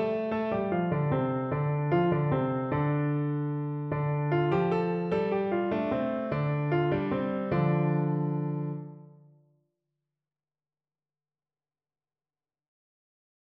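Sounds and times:
piano: 0.0s - 9.4s.

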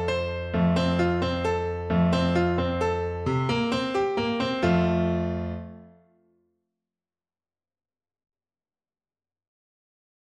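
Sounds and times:
easy waltz on piano: 0.0s - 5.9s.

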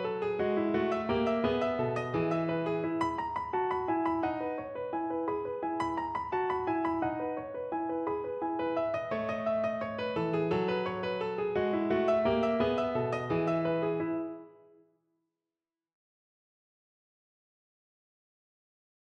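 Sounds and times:
piano: 0.0s - 14.9s.

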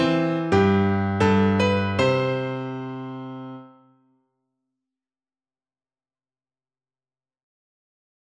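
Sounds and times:
national anthem played on piano: 0.0s - 3.9s.

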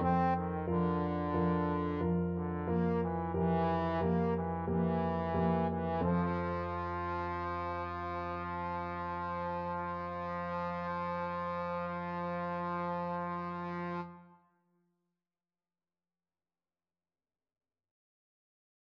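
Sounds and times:
trombone playing a baroque cantata movement: 0.0s - 14.4s.

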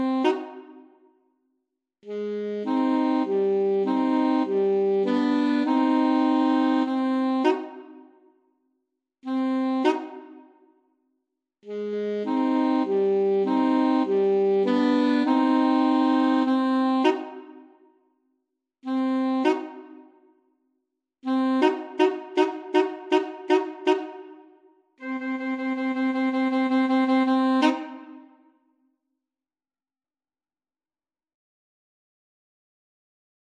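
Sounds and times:
alto sax trio: 0.0s - 0.6s, 2.1s - 7.9s, 9.3s - 10.3s, 11.7s - 17.5s, 18.9s - 20.0s, 21.3s - 24.2s, 25.0s - 28.2s.

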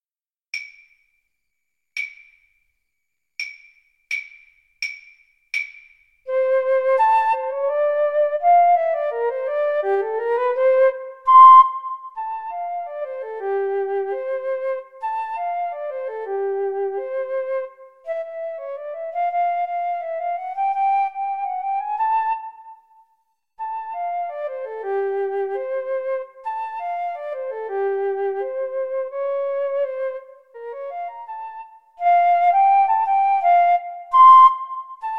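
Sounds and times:
flute and clarinet duet: 6.3s - 22.9s, 23.6s - 35.1s.

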